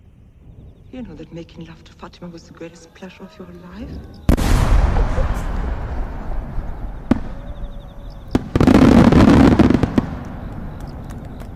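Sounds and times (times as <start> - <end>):
speech: 0.9 - 6.0
fireworks exploding: 3.8 - 11.5.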